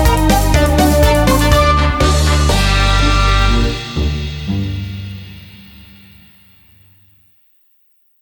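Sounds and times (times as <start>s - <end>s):
karaoke singing: 0.0s - 4.6s.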